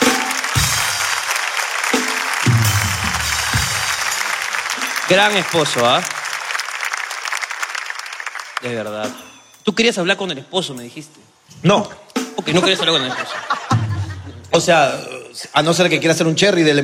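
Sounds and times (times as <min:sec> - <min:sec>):
audience applause: 0:00.0 - 0:08.7
speech: 0:05.1 - 0:06.2, 0:08.6 - 0:13.6, 0:14.6 - 0:16.8
laughter: 0:12.3 - 0:14.5.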